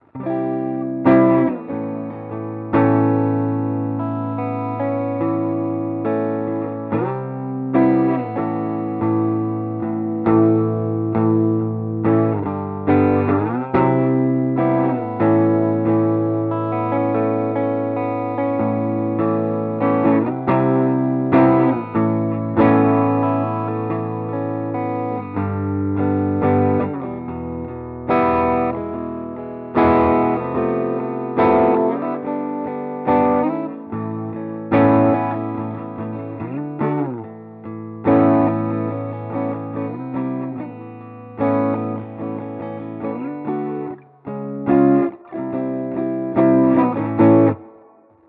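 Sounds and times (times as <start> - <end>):
clean guitar through Mooer GE300 Lite Marshall acoustic setting: 0.0 - 48.2.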